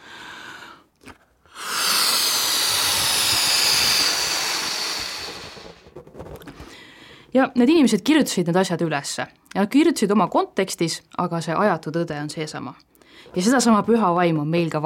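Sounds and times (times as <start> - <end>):
air rushing from a balloon: 1.5 - 6.0
speech: 7.4 - 14.8.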